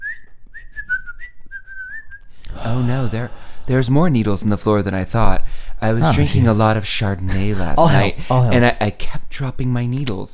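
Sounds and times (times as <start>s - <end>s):
person whistling bird-like sounds imitating birdsong: 0.0s - 2.3s
speech: 2.7s - 10.3s.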